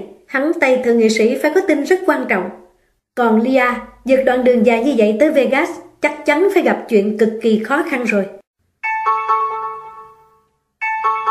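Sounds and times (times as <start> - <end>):
speech: 0.4 - 2.6, 3.2 - 8.4
doorbell ringing: 8.8 - 11.3.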